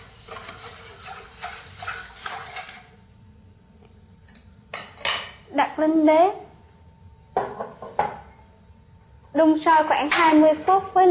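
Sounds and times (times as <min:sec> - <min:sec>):
stirring sugar into water in a pot: 0:00.0 - 0:03.0
speech: 0:05.8 - 0:06.4, 0:09.4 - 0:11.0.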